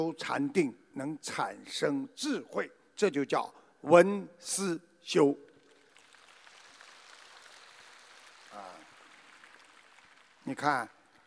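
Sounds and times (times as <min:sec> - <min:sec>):
speech: 0:00.0 - 0:05.5, 0:10.4 - 0:11.0
light audience clapping: 0:05.5 - 0:11.2.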